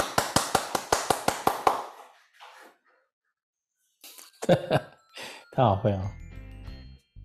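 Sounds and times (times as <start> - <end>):
handclaps: 0.0 - 2.1
speech: 4.5 - 4.9, 5.6 - 6.2.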